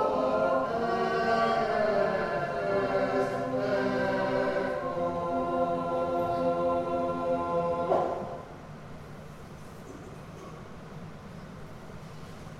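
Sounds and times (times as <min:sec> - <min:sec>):
carol singing: 0:00.0 - 0:08.4.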